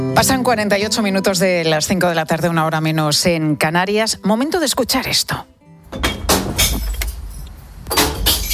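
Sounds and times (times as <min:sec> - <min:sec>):
speech: 0:00.2 - 0:06.1
glass bottles crashing into a recycling container: 0:05.9 - 0:08.5.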